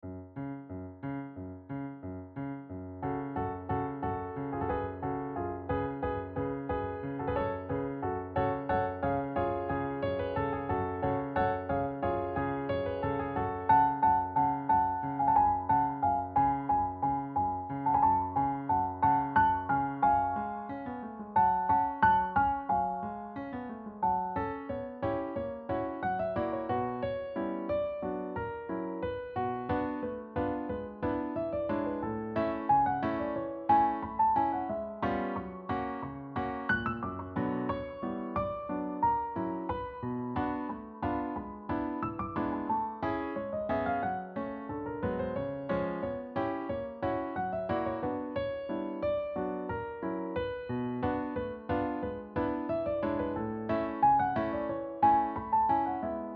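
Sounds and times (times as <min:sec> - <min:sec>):
piano: 0:00.0 - 0:56.3.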